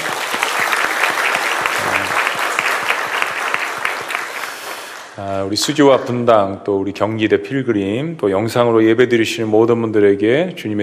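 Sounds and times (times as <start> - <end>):
audience clapping: 0.0 - 5.2
speech: 5.3 - 10.8.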